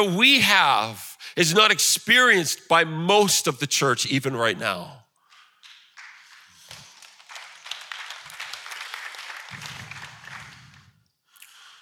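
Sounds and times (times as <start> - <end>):
speech: 0.0 - 5.0
audience clapping: 5.3 - 11.1.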